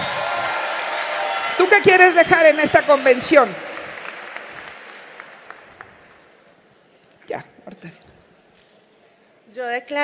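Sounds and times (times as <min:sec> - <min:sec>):
audience applause: 0:00.0 - 0:06.3
speech: 0:01.6 - 0:03.7, 0:09.6 - 0:10.0.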